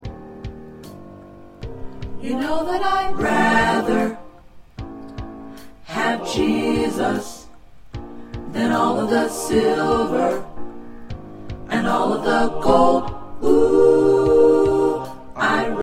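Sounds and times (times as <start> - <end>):
SATB four-part choir singing: 2.2 - 4.4, 5.8 - 7.5, 8.5 - 10.6, 11.6 - 15.8.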